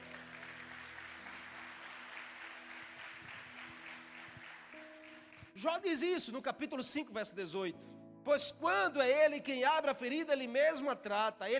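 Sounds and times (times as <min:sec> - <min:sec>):
audience applause: 0:00.0 - 0:05.6
speech: 0:05.6 - 0:11.5.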